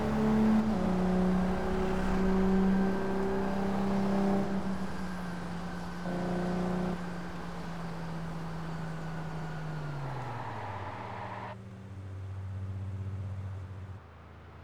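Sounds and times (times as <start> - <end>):
Mercedes-Benz CLK 55 AMG engine: 0.0 - 13.7.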